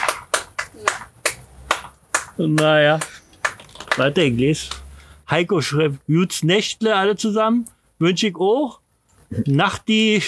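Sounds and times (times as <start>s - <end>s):
handclaps from one or two people: 0.0s - 4.8s
speech: 2.4s - 3.1s, 4.0s - 10.2s.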